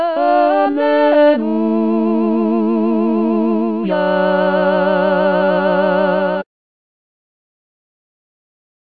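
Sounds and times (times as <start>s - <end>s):
tenor singing: 0.1s - 6.5s.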